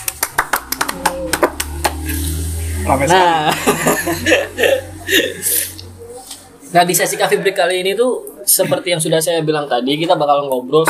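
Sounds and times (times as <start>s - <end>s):
audience applause: 0.0s - 2.1s
speech: 2.8s - 5.7s, 6.7s - 10.8s
laughter: 3.1s - 6.0s.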